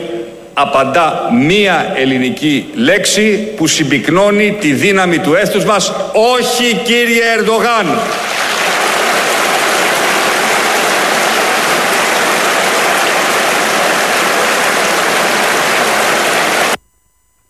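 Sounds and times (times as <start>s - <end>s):
speech: 0.6s - 8.6s
audience applause: 8.0s - 16.8s.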